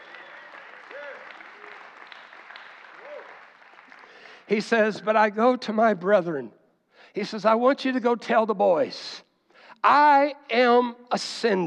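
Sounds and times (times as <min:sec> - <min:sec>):
audience clapping: 0:00.0 - 0:05.3
speech: 0:04.5 - 0:09.2, 0:09.8 - 0:11.6.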